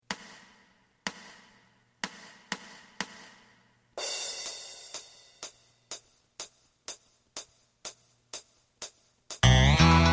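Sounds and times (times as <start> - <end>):
drum: 0.1 - 10.0.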